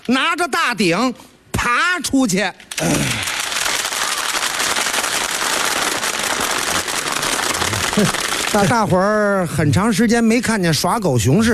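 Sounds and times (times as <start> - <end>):
speech: 0.0 - 3.4, 8.0 - 11.5
audience applause: 2.9 - 9.1.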